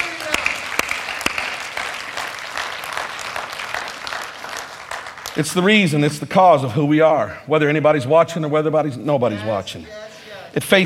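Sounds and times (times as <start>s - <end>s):
audience clapping hands: 0.0s - 6.2s
speech: 5.4s - 10.0s, 10.6s - 10.8s.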